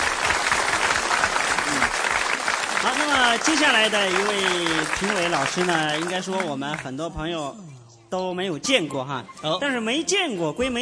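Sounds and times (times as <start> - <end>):
audience applause for a judge at a singing contest: 0.0 - 6.9
speech: 2.8 - 10.8.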